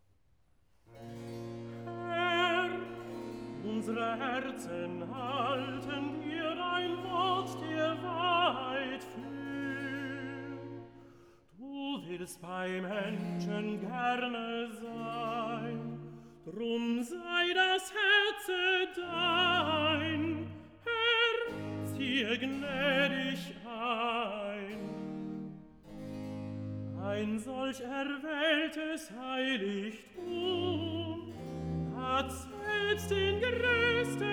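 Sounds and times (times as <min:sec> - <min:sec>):
tenor singing recitative: 0:01.6 - 0:25.7, 0:26.8 - 0:34.3.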